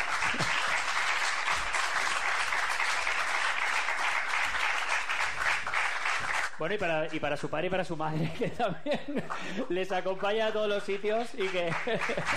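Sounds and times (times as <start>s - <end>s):
audience applause: 0.0s - 6.8s, 11.4s - 12.3s
speech: 6.6s - 12.3s
laughter: 8.1s - 9.7s, 11.4s - 12.3s.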